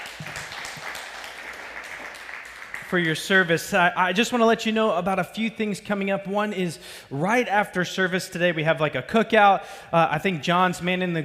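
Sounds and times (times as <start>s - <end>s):
church congregation applauding those who served in the military: 0.0s - 3.7s
speech: 2.9s - 11.2s.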